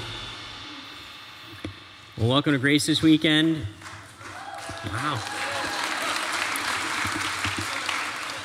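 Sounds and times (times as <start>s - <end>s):
speech: 2.2s - 3.8s, 4.8s - 5.4s
audience applause: 3.8s - 8.4s.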